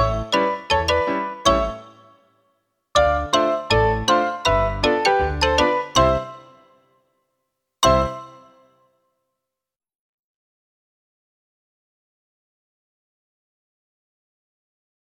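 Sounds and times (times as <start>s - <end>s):
solo foxtrot music: 0.0s - 2.2s, 3.0s - 6.7s, 7.8s - 8.6s.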